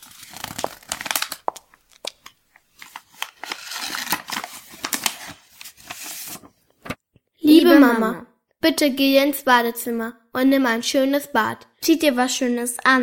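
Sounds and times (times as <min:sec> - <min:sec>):
paper letter being unfolded: 0:00.0 - 0:07.0
speech: 0:07.7 - 0:13.0.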